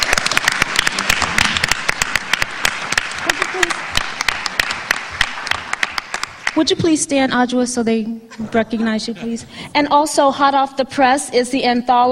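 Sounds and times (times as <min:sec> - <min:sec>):
audience applause: 0:00.0 - 0:06.6
speech: 0:06.6 - 0:12.0.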